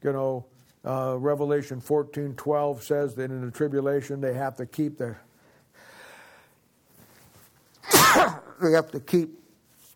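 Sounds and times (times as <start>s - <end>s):
speech: 0.0s - 5.3s, 8.6s - 9.4s
person sneezing: 7.8s - 8.6s.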